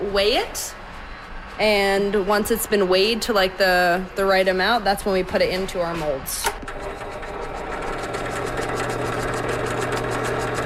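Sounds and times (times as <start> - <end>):
speech: 0.1 - 0.8, 1.6 - 7.0
drill press running a mixing blade: 6.5 - 10.6.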